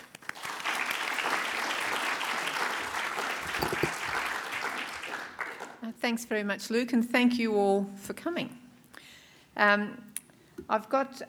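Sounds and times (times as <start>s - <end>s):
audience applause welcoming an author to the stage: 0.0s - 5.8s
speech: 6.0s - 8.6s, 9.6s - 10.1s, 10.7s - 11.2s.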